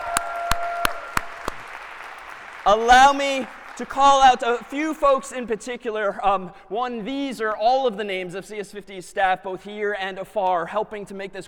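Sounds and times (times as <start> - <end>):
audience applause for a course's staff team: 0.0 - 5.2
speech: 2.6 - 11.4.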